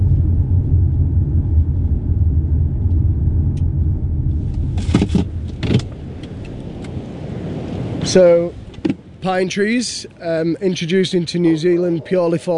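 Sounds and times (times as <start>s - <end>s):
rattling bursts: 0.0s - 7.0s
car driving toward Bottle Lake Forest: 0.0s - 12.5s
speech: 8.1s - 8.6s, 9.2s - 12.5s.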